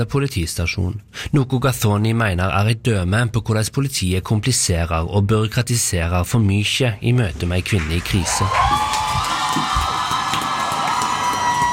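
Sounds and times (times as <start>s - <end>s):
speech: 0.0s - 9.8s
theatre audience cheering and whooping: 7.7s - 11.7s
high shouts: 8.2s - 11.7s.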